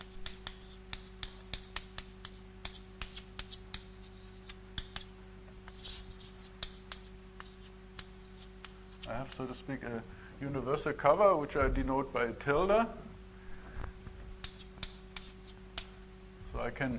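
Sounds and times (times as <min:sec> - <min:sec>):
writing on a board during a mathematics lecture: 0:00.0 - 0:09.6, 0:14.4 - 0:16.0
low electrical hum: 0:00.0 - 0:16.9
speech: 0:09.2 - 0:13.1, 0:16.7 - 0:16.9.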